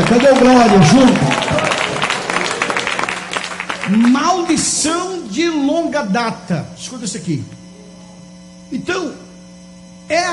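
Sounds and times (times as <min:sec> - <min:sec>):
audience applause: 0:00.0 - 0:04.9
speech: 0:00.2 - 0:01.5, 0:03.9 - 0:07.6, 0:08.7 - 0:09.2, 0:10.1 - 0:10.3.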